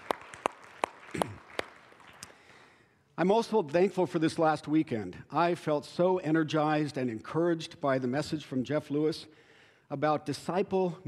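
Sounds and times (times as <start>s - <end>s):
sharp isolated hand claps: 0.0s - 2.4s
speech: 3.2s - 11.0s.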